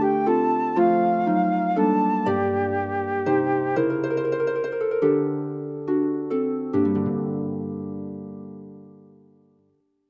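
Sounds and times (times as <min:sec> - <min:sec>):
flute: 0:00.0 - 0:05.4
harp: 0:00.0 - 0:09.6.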